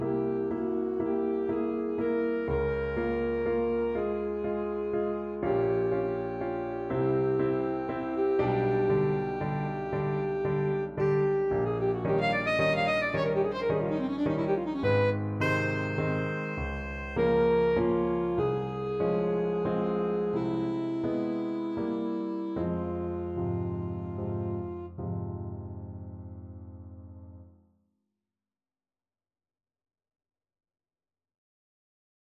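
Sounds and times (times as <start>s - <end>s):
alto saxophone ballad: 0.0s - 25.0s.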